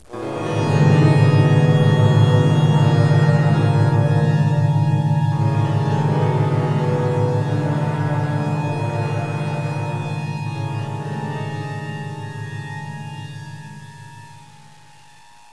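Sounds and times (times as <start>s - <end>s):
rescue start music: 0.0s - 15.5s.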